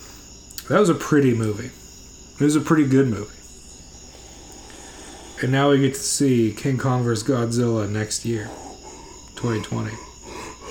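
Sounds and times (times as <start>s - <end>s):
hiss: 0.0s - 10.6s
speech: 0.7s - 1.8s, 2.4s - 3.4s, 5.4s - 8.7s, 9.4s - 10.1s
deep heavy chest breaths with throaty exhale: 3.4s - 6.5s, 7.6s - 10.6s.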